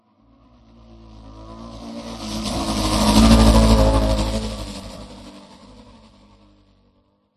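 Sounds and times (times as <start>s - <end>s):
distorted saturated futuristic sci-fi racer passby whoosh: 1.2s - 5.9s.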